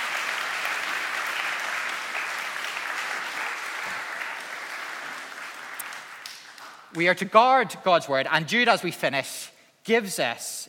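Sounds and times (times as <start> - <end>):
round of applause: 0.0 - 7.0
speech: 7.0 - 10.6.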